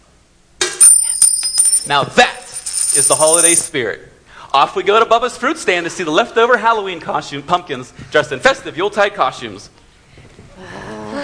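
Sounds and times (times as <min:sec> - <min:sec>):
coin dropped into a metal kettle: 0:00.8 - 0:03.7
speech: 0:01.8 - 0:09.8.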